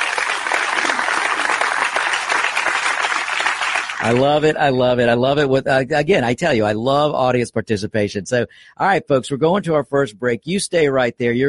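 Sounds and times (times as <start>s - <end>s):
audience applause: 0.0s - 4.5s
speech: 4.0s - 11.4s.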